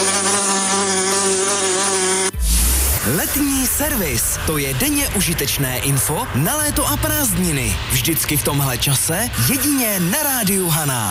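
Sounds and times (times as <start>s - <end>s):
wasp buzzing: 0.0s - 4.1s
speech: 3.1s - 11.0s.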